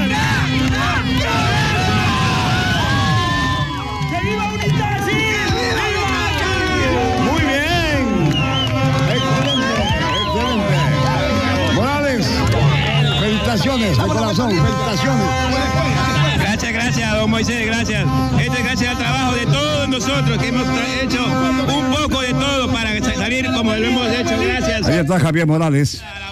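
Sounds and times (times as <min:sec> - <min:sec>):
crowd whooping and cheering: 0:00.0 - 0:14.5
crowd chanting a battle cry: 0:00.0 - 0:25.1, 0:26.0 - 0:26.3
speech: 0:14.3 - 0:15.5, 0:17.3 - 0:19.4, 0:20.0 - 0:26.2.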